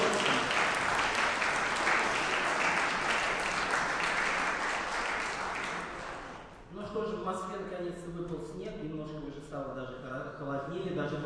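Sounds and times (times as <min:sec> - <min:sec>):
concert audience applause: 0:00.0 - 0:06.5
speech: 0:07.3 - 0:11.2.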